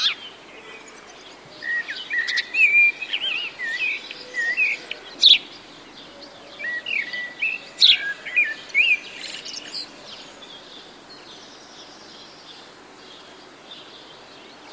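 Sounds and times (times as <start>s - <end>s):
birds singing: 0.0s - 14.7s.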